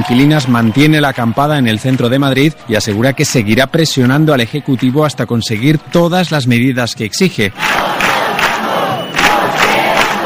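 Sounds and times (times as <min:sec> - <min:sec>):
speech: 0:00.1 - 0:08.1
protest crowd chanting at assembly: 0:07.5 - 0:10.2.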